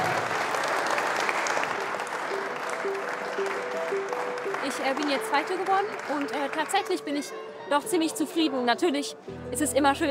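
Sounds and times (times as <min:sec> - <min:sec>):
applause: 0:00.0 - 0:07.3
speech: 0:04.7 - 0:10.0.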